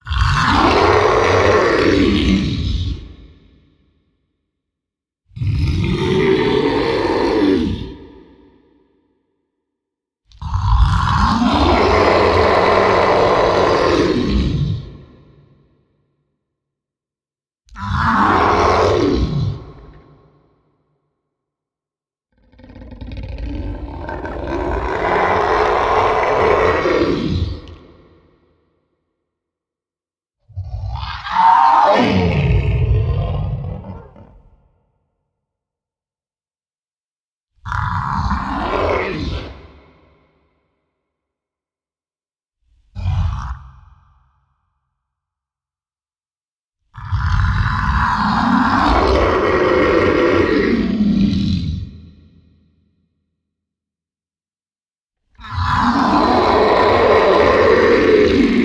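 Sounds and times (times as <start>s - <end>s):
monster screaming: 0.1s - 3.2s, 5.5s - 8.6s, 10.8s - 15.4s, 17.8s - 20.4s, 22.6s - 28.5s, 30.6s - 34.6s, 37.7s - 40.4s, 47.0s - 52.5s, 55.4s - 58.6s.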